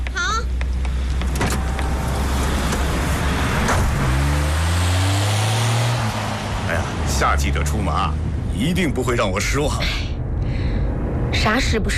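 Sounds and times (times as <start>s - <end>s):
car engine running: 0.0s - 9.2s
speech: 7.4s - 10.1s, 11.4s - 11.9s.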